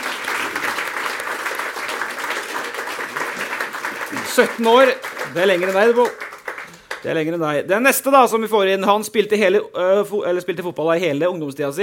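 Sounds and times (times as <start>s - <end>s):
audience applause: 0.0s - 7.2s
speech: 4.4s - 6.2s, 7.0s - 11.8s.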